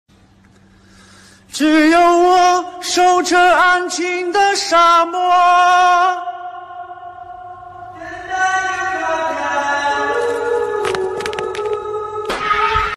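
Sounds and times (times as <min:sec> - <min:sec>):
Chinese man singing into a hole: 0:01.5 - 0:12.9.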